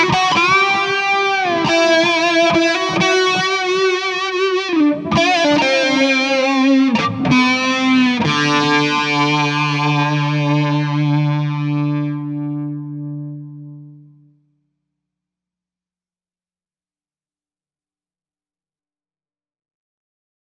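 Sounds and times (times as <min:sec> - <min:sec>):
Ram's Head Big Muff distorted guitar: 0:00.0 - 0:14.4.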